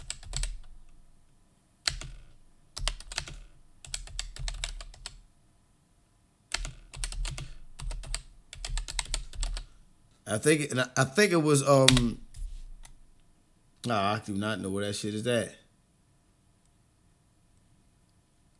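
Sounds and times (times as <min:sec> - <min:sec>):
slow typing on a computer keyboard: 0:00.0 - 0:00.9, 0:01.9 - 0:05.2, 0:06.5 - 0:09.7
speech: 0:10.3 - 0:12.2, 0:13.8 - 0:15.6.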